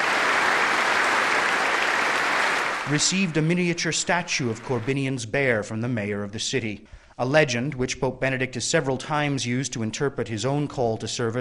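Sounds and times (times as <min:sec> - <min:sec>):
thunderous applause of thousands of gathered faithful outside a Gothic cathedral: 0:00.0 - 0:05.2
speech: 0:02.9 - 0:11.3.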